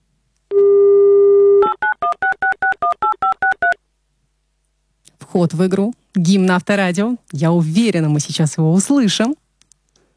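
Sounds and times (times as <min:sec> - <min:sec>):
telephone number being dialed: 0:01.6 - 0:03.8
speech: 0:05.3 - 0:09.4.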